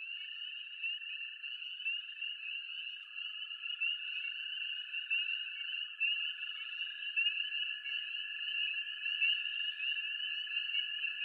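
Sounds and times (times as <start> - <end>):
Spring Peepers in a dense chorus: 0.0 - 11.2.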